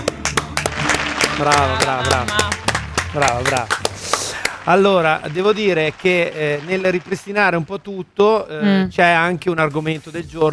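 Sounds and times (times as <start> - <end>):
studio audience applause: 0.0 - 7.8
speech: 1.4 - 10.5.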